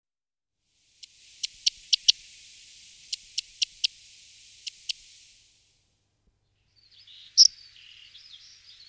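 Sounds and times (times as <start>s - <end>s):
corn bunting singing: 1.0s - 5.6s, 6.8s - 8.8s.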